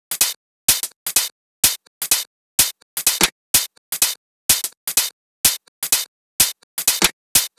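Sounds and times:
drums: 0.0s - 7.5s.

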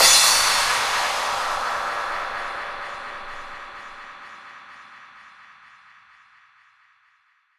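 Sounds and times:
downlifter effect: 0.0s - 4.0s.

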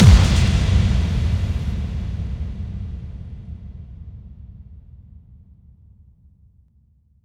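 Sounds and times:
bass drum FX kicks: 0.0s - 3.8s.

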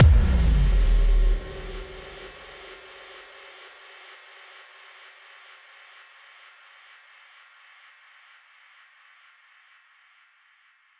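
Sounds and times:
boom effect: 0.0s - 2.6s.

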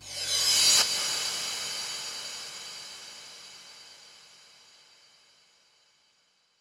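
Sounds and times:
reverse cymbal crash: 0.0s - 5.2s.

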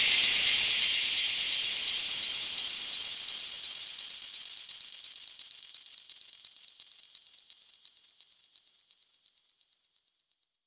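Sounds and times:
downsweeps: 0.0s - 3.3s.

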